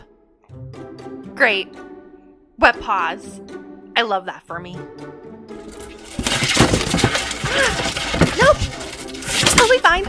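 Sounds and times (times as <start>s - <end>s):
speech: 1.4s - 1.9s, 2.6s - 5.8s, 9.4s - 10.0s
little metal creak: 5.6s - 9.9s.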